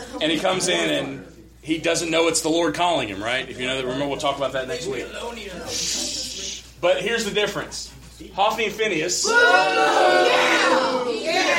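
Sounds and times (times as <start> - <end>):
speech: 0.1 - 6.2, 6.8 - 11.5
audience booing at a church Bible lesson: 9.2 - 11.5.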